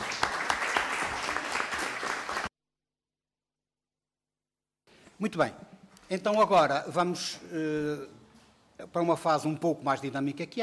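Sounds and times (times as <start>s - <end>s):
crowd clapping: 0.0s - 2.5s
speech: 5.2s - 8.2s, 8.8s - 10.6s.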